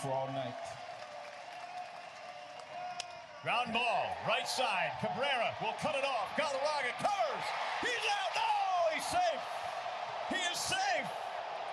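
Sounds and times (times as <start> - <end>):
speech: 0.0 - 0.8, 3.4 - 11.3
large stadium crowd cheering and applauding: 0.0 - 11.7.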